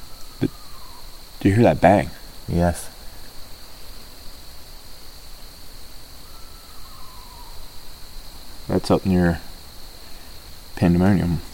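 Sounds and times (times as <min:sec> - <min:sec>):
owl hooting: 0:00.0 - 0:03.2, 0:06.2 - 0:07.9
speech: 0:00.4 - 0:00.6, 0:01.4 - 0:02.9, 0:08.8 - 0:09.5, 0:10.8 - 0:11.5.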